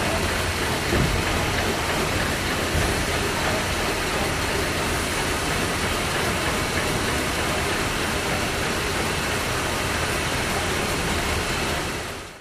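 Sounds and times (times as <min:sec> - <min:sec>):
WWII Liberty steam engine warming up: 0:00.0 - 0:12.3.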